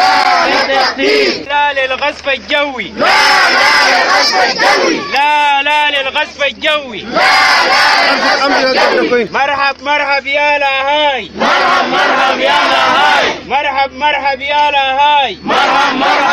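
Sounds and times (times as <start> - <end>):
displaced people chanting slogans at a camp protest in Darfur: 0.0 - 1.5, 2.8 - 6.0, 6.8 - 9.3, 11.2 - 13.5, 15.3 - 16.3
speech: 0.9 - 16.3.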